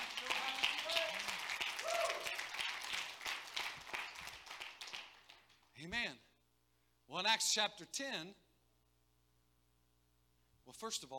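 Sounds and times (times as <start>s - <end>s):
audience clapping hands: 0.0s - 5.7s
speech: 5.8s - 6.3s, 7.1s - 8.4s, 10.7s - 11.1s.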